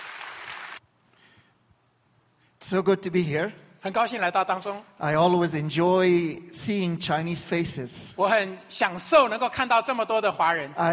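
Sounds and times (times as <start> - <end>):
audience clapping at a bilingual church gathering: 0.0 - 0.8
speech: 2.7 - 10.9.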